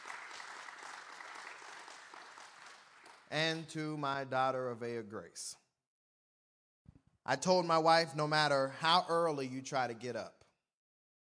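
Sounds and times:
audience clapping hands: 0:00.0 - 0:03.8
speech: 0:03.3 - 0:05.6, 0:07.3 - 0:10.4.

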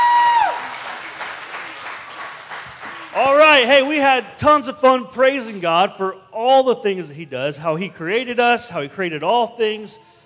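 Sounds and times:
audience clapping hands in praise: 0:00.0 - 0:04.2
speech: 0:03.2 - 0:10.1.

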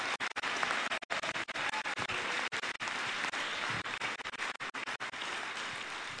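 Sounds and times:
audience clapping hands: 0:00.0 - 0:06.1.

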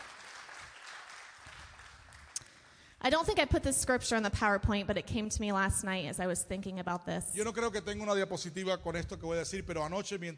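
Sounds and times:
applause: 0:00.0 - 0:02.8
speech: 0:03.0 - 0:10.3.

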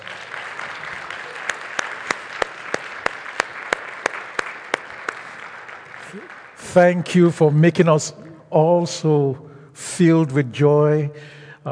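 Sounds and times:
audience clapping: 0:00.0 - 0:07.4
speech: 0:06.1 - 0:11.7.

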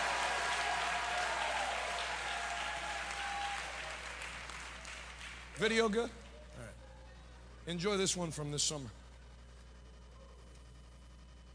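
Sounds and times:
audience applause: 0:00.0 - 0:05.9
speech: 0:05.6 - 0:06.2, 0:07.7 - 0:09.0.

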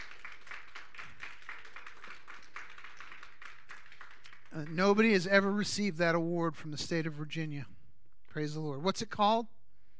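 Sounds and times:
round of applause: 0:00.0 - 0:05.4
speech: 0:04.5 - 0:07.8, 0:08.4 - 0:09.6.

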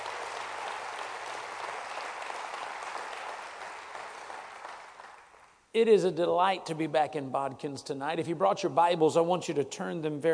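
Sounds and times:
audience clapping hands in praise: 0:00.0 - 0:05.6
speech: 0:05.8 - 0:10.3.

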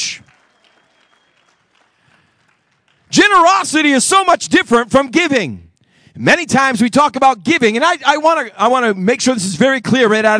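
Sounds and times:
church congregation applauding during a service: 0:00.0 - 0:03.9
speech: 0:03.2 - 0:10.3.

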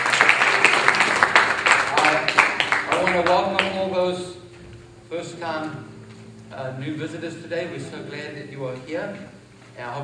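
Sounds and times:
church congregation applauding the worship team: 0:00.0 - 0:04.3
speech: 0:03.2 - 0:04.4, 0:05.1 - 0:05.9, 0:06.5 - 0:10.0.

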